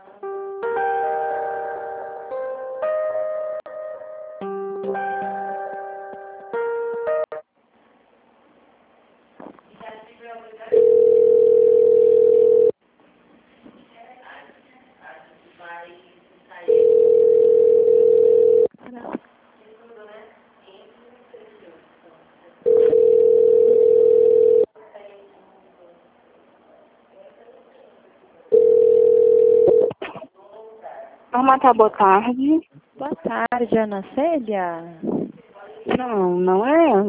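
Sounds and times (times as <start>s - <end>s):
short electronic telephone melody while call is transferred: 0.2s - 7.4s
telephone ringing tones while call is transferred to an extension: 10.7s - 12.8s, 16.7s - 18.7s, 22.7s - 24.7s, 28.5s - 30.0s
speech: 31.5s - 35.1s, 36.0s - 37.0s.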